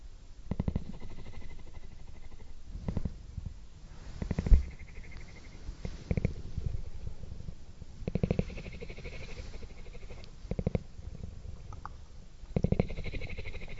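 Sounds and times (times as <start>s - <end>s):
kittens purring: 0.4s - 13.7s.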